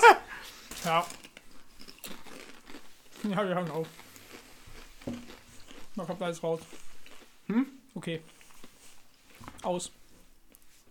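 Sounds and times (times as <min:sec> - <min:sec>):
laughter: 0:00.0 - 0:00.3
crunching potato chips from a bag: 0:00.5 - 0:07.3
speech: 0:00.8 - 0:01.2, 0:03.2 - 0:04.0, 0:06.0 - 0:06.8, 0:07.5 - 0:08.4, 0:09.6 - 0:10.0.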